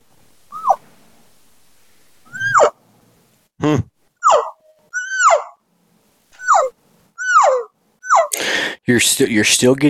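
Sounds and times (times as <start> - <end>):
voice imitating tight-lipped cow elk call: 2.3 - 2.7, 3.6 - 5.6, 6.4 - 8.4
speech: 8.9 - 9.8.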